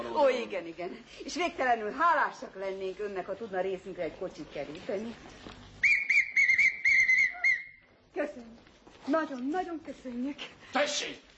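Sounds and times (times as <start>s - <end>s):
speech: 0.2s - 5.6s, 8.2s - 11.3s
hunting whistle blown: 5.8s - 7.8s.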